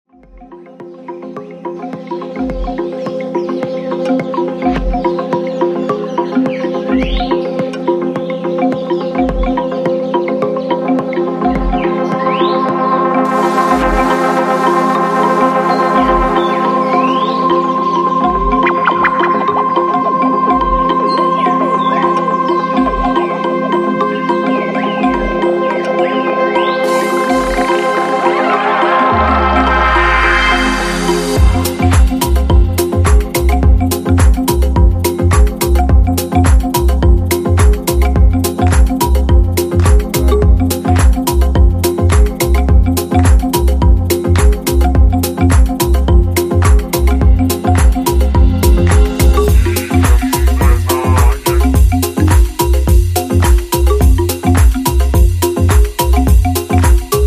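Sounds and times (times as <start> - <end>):
marimba: 0.1 - 57.2.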